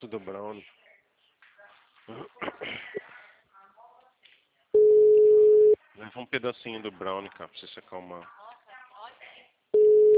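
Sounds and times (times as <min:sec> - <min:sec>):
speech: 0:00.0 - 0:00.9, 0:02.1 - 0:03.0, 0:06.0 - 0:08.4
telephone busy signal while placing a call: 0:04.8 - 0:05.8, 0:09.8 - 0:10.1.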